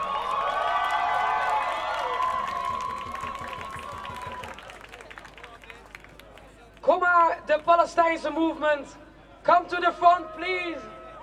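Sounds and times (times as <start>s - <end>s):
audience cheering: 0.0s - 5.6s
audience applause: 0.0s - 6.6s
speech: 7.5s - 10.9s.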